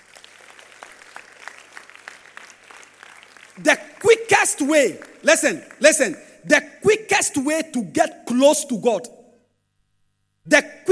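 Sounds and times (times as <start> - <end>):
crowd clapping steadily: 0.0 - 6.4
speech: 3.6 - 3.8, 4.5 - 9.2, 10.5 - 10.8.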